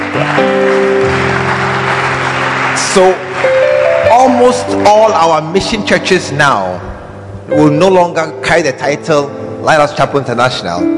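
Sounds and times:
audience clapping: 0.0s - 6.0s
speech: 2.9s - 3.6s, 4.3s - 6.9s, 7.5s - 10.9s.

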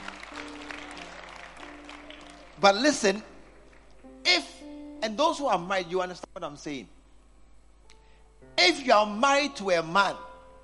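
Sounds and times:
audience clapping: 0.0s - 4.2s
speech: 2.6s - 3.3s, 5.0s - 7.0s, 8.5s - 10.2s.

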